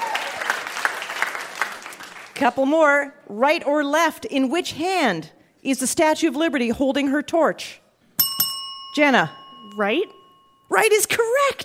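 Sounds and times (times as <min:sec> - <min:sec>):
audience applause: 0:00.0 - 0:02.4
speech: 0:02.4 - 0:07.8, 0:08.9 - 0:11.6.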